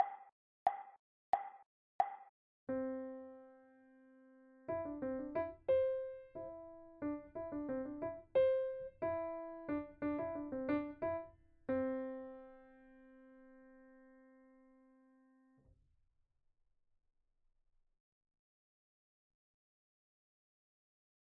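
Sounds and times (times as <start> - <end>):
three musical notes: 2.7 - 13.8.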